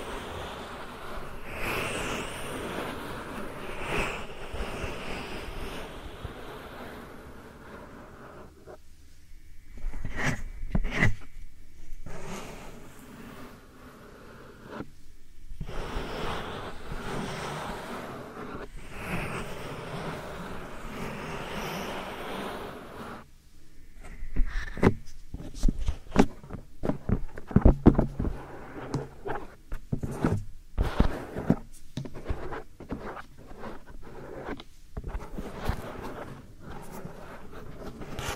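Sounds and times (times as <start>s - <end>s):
soft powder ear massage rubbing: 0.0s - 38.3s.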